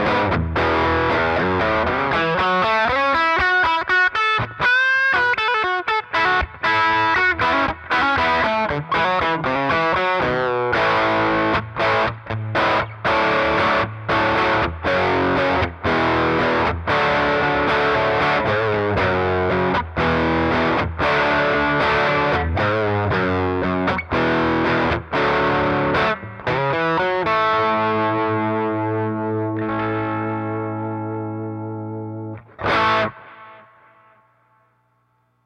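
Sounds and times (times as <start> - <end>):
low gain classic rock electric guitar with cutting mids and subtle delay through 6V6 amp: 0.0 - 34.6.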